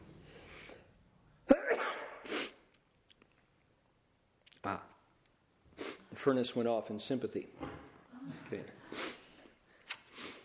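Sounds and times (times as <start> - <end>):
sneeze: 1.5 - 2.7
speech: 4.6 - 4.9, 6.1 - 7.8, 8.5 - 8.8.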